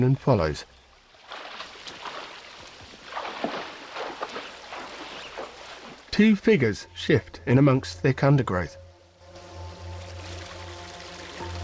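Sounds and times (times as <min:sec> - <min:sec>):
speech: 0:00.0 - 0:00.8, 0:06.2 - 0:08.8
jungle stream with waterfalls flowing downhill: 0:01.0 - 0:06.2, 0:09.1 - 0:11.6.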